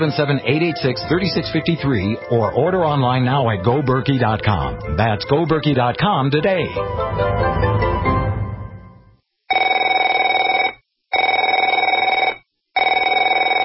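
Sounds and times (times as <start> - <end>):
speech: 0.0 - 7.7
telephone ringing: 9.5 - 13.6.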